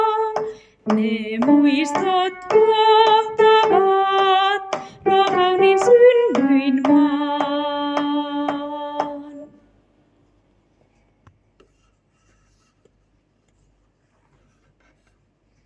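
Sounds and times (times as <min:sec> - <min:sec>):
soprano singing: 0:00.0 - 0:09.6.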